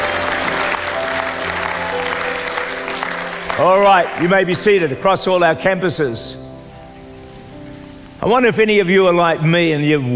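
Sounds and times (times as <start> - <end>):
audience clapping: 0.0 - 5.0
speech: 3.6 - 6.5, 8.2 - 10.1.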